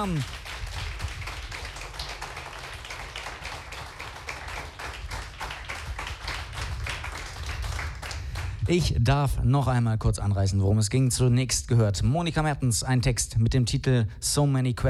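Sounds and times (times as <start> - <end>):
speech: 0.0 - 0.4, 8.7 - 14.8
audience applause: 0.0 - 8.6.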